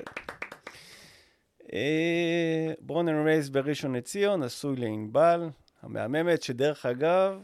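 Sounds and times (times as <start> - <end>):
hands clapping: 0.0 - 0.9
speech: 1.7 - 7.4.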